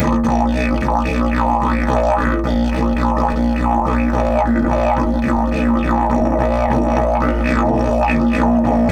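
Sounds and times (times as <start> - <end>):
didgeridoo: 0.0 - 8.9.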